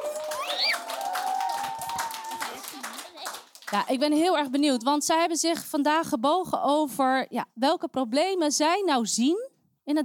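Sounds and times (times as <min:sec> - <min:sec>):
audience applause: 0:00.0 - 0:03.8
speech: 0:03.7 - 0:10.0.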